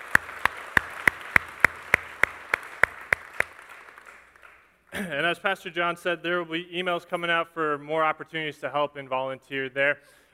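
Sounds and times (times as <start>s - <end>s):
audience applause: 0.0s - 5.1s
speech: 5.0s - 10.3s.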